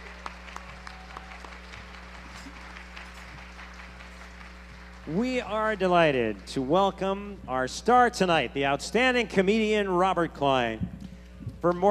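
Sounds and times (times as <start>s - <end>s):
audience applauding a performer: 0.0s - 7.3s
speech: 5.1s - 10.9s, 11.6s - 11.9s.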